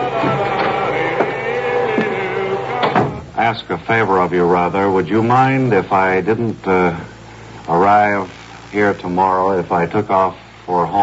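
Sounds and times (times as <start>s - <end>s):
vacuum cleaner running: 0.0s - 11.0s
speech: 3.5s - 7.1s, 7.7s - 11.0s.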